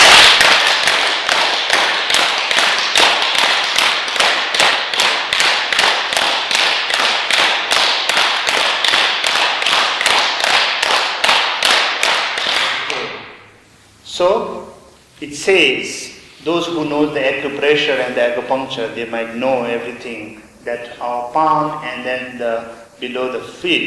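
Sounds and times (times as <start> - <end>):
hard repeated hand clapping: 0.0 - 13.2
speech: 15.4 - 23.8.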